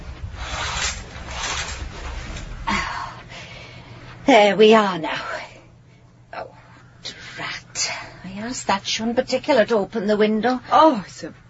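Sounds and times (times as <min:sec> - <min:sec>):
fabric curtains being drawn back in a bedroom: 0:00.0 - 0:02.9
speech: 0:04.3 - 0:05.3, 0:08.4 - 0:11.4.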